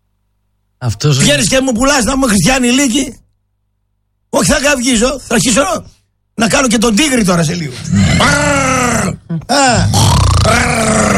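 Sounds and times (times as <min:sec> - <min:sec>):
speech: 0:00.8 - 0:03.2, 0:04.4 - 0:11.0
person imitating a pig with grunts and squealing snorts: 0:07.8 - 0:11.1.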